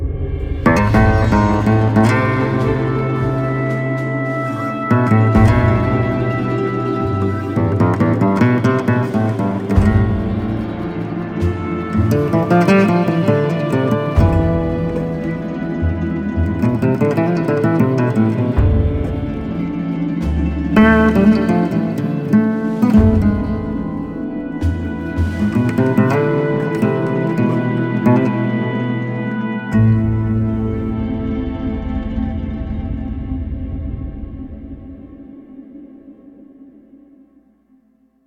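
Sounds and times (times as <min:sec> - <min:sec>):
nylon string guitar: 0:00.1 - 0:37.2.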